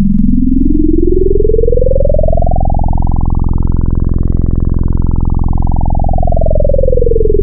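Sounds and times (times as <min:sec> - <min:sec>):
FM wavetable synth tone: 0:00.0 - 0:07.4.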